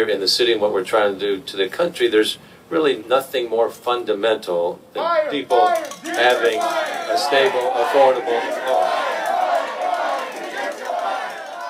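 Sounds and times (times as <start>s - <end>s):
speech: 0.0s - 8.9s
protesters shouting at a news conference: 5.0s - 11.6s.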